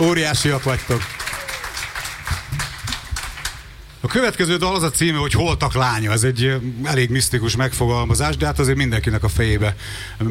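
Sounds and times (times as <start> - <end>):
speech: 0.0 - 1.4, 4.0 - 10.3
audience applause at a live music performance: 0.2 - 3.7.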